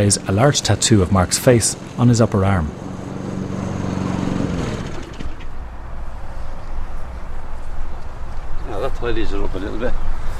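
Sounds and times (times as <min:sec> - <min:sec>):
speech: 0:00.0 - 0:02.9, 0:09.1 - 0:10.2
lawn mower cutting grass: 0:00.0 - 0:05.6.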